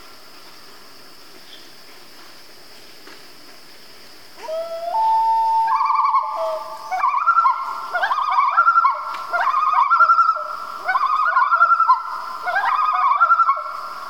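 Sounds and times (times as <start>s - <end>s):
common loon family group calling in Canada: 4.4s - 14.0s.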